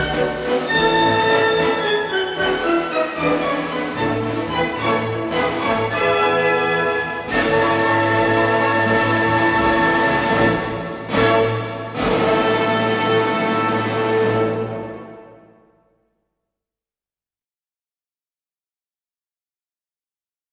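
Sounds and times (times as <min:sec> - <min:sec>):
orchestral waltz: 0:00.0 - 0:15.7.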